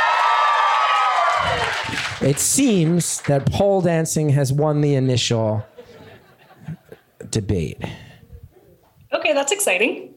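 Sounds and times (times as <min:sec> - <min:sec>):
audience applause: 0:00.0 - 0:03.9
crowd cheering and whooping: 0:00.0 - 0:04.2
speech: 0:02.2 - 0:05.7, 0:06.6 - 0:08.1, 0:09.2 - 0:10.1
laughter: 0:05.4 - 0:07.4.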